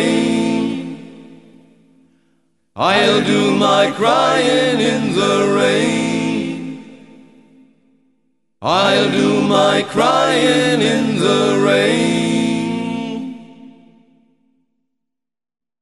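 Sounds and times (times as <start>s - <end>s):
a cappella singing: 0.0s - 1.3s, 2.8s - 7.0s, 8.6s - 14.0s.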